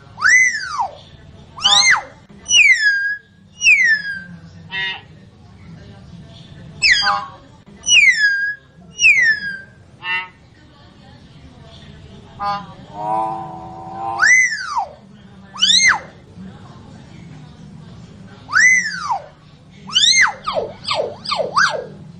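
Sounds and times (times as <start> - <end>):
common hill myna whistling song: 0.2 - 1.0, 1.6 - 5.1, 6.8 - 10.4, 12.4 - 15.0, 15.6 - 16.2, 18.5 - 22.0.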